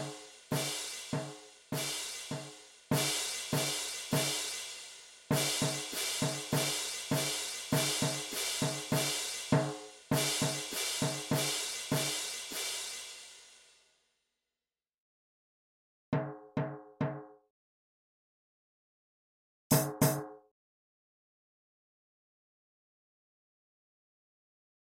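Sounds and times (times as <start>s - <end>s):
drum kit: 0.0s - 13.6s, 19.7s - 20.2s.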